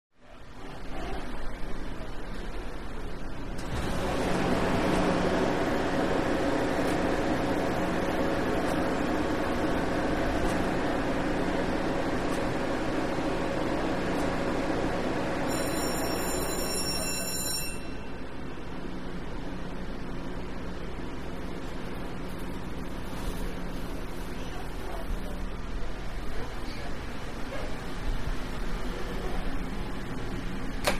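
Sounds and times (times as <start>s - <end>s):
commuter train interior: 0.2s - 30.9s.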